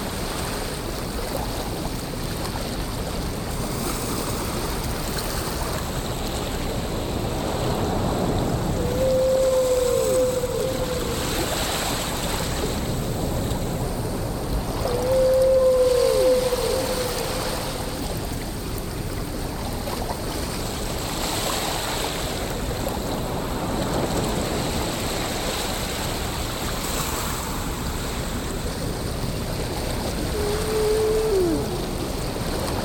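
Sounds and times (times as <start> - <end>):
ocean: 0.0 - 32.8
whales: 7.5 - 18.8, 29.6 - 32.8.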